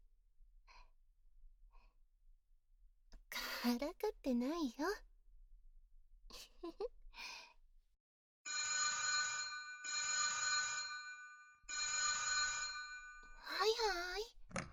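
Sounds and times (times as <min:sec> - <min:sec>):
speech: 0:03.6 - 0:05.1, 0:06.6 - 0:07.3
electronic telephone ringing: 0:08.5 - 0:13.7.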